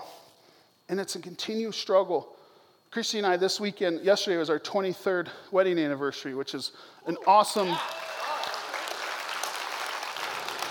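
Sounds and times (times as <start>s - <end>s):
speech: 0.9s - 8.0s
audience applause: 7.2s - 10.6s.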